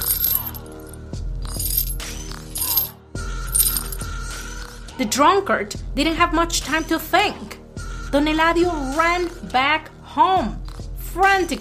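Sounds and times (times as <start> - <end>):
chains rattling and clinking: 0.0 - 4.1
speech: 5.0 - 11.5.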